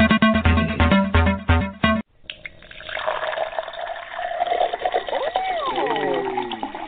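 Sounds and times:
rhythmic sound burst: 0:00.0 - 0:02.1
wine being poured into a cup: 0:02.4 - 0:06.8.

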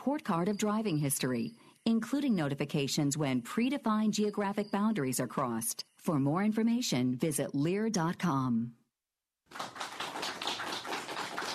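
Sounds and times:
speech: 0:00.0 - 0:08.8, 0:09.5 - 0:09.8
applause from the interns from Magna: 0:09.5 - 0:11.5.

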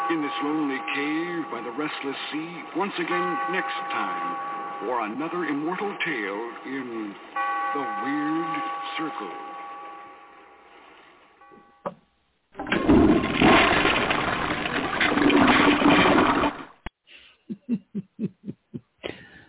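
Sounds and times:
speech: 0:00.1 - 0:09.5
toilet flush water sound effect: 0:12.6 - 0:16.7
laughter: 0:17.5 - 0:18.9.

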